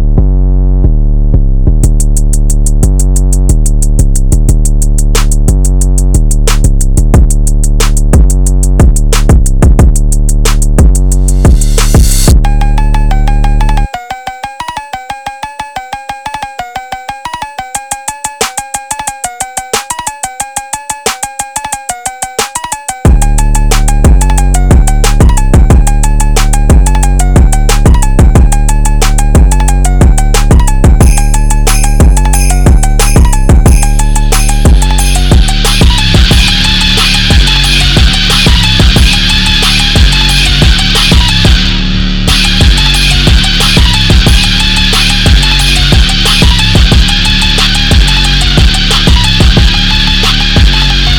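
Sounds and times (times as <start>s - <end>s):
rock phonk music: 0.2s - 51.1s.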